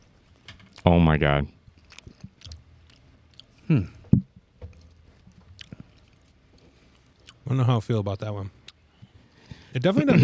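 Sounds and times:
speech: 0:00.8 - 0:01.6, 0:03.7 - 0:04.0, 0:07.5 - 0:08.6, 0:09.7 - 0:10.2
chewing on vinegary sauced food: 0:01.7 - 0:03.7, 0:04.6 - 0:07.5.

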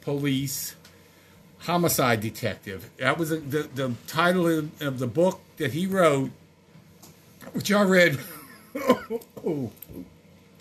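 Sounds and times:
speech: 0:00.0 - 0:00.8, 0:01.6 - 0:06.4, 0:07.4 - 0:10.2
person coughing after food or drink went down the wrong way: 0:08.7 - 0:09.7.

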